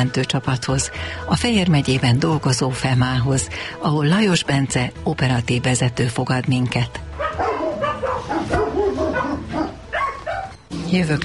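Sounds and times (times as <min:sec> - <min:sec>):
speech: 0:00.0 - 0:07.1, 0:10.9 - 0:11.2
large dog barking during an animal rescue callout in Hungary: 0:07.2 - 0:10.6.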